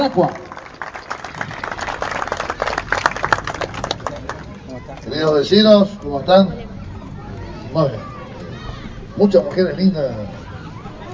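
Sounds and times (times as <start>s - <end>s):
speech: 0.0s - 0.4s, 5.2s - 6.6s, 7.7s - 8.1s, 9.2s - 10.4s
audience applause: 0.0s - 5.0s.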